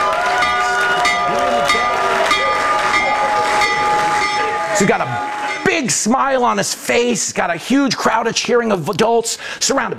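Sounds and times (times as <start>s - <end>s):
murmuring voices: 0.0s - 5.9s
stock market bell ringing in the Oval Office: 0.0s - 6.5s
speech: 4.8s - 9.9s.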